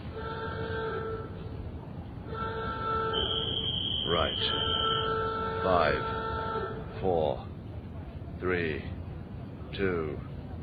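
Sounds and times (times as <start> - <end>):
alarm horn blaring: 0.1 - 1.4, 2.3 - 6.9
speech: 4.3 - 4.7, 5.6 - 6.2, 7.0 - 7.5, 8.4 - 9.0, 9.7 - 10.3.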